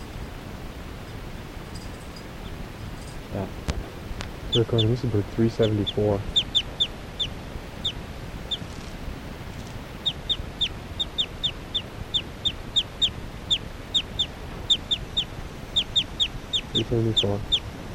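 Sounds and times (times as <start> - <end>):
low rumbling noise: 0.0 - 17.9
speech: 4.5 - 6.4, 16.9 - 17.6
short high-pitched bird chirps: 4.5 - 8.8, 9.6 - 17.9.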